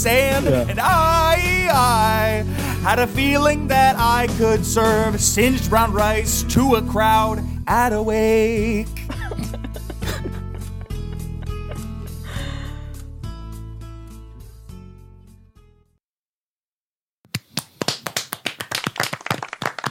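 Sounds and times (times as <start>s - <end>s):
speech: 0.0s - 9.1s
laughter: 9.1s - 12.7s
hands clapping: 17.3s - 19.8s.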